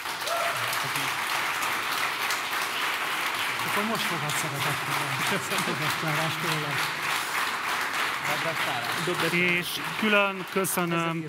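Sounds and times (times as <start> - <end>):
audience applause: 0.0 - 11.2
speech: 0.8 - 1.2, 3.8 - 7.1, 8.3 - 11.2.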